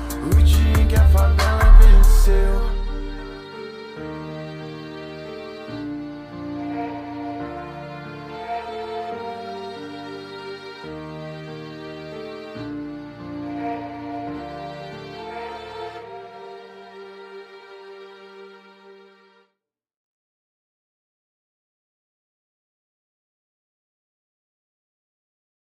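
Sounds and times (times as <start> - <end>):
deep bass: 0.3 - 3.4.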